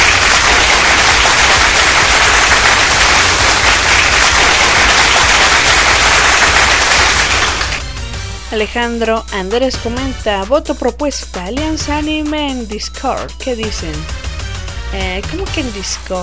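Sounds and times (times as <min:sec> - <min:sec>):
crowd applause: 0:00.0 - 0:07.9
speech: 0:08.5 - 0:14.2, 0:14.9 - 0:16.2.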